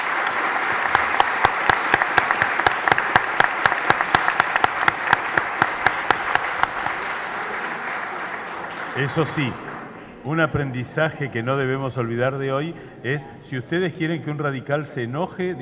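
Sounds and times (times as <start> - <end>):
audience applause: 0.0 - 9.0
speech: 9.0 - 15.6.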